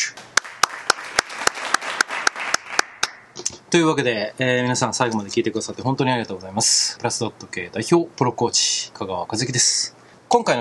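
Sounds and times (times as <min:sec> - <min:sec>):
audience applause: 0:00.2 - 0:03.2
speech: 0:03.7 - 0:10.5.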